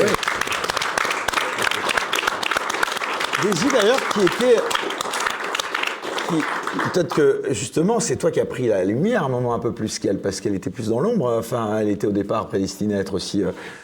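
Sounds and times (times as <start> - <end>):
audience applause: 0.0 - 7.4
speech: 3.4 - 4.8, 6.3 - 13.8.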